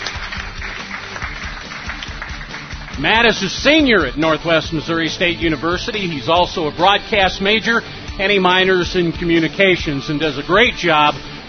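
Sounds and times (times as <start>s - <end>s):
audience applause for a sideline reporter at a Northwest Missouri State University gathering: 0.0s - 3.4s
speech: 3.0s - 11.3s.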